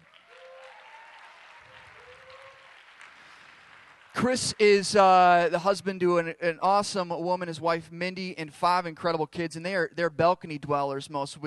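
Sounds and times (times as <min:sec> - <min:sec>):
crowd applause: 0:00.0 - 0:05.0
speech: 0:04.2 - 0:11.4.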